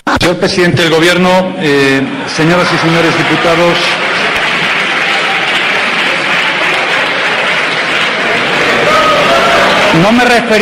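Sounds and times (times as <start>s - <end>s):
speech: 0.2s - 4.4s, 10.0s - 10.6s
applause from a large chamber of legislators: 2.4s - 10.6s.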